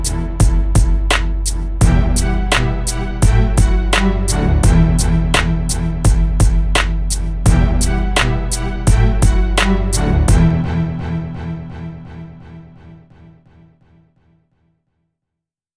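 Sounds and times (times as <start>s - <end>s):
corporate background music: 0.0s - 12.6s.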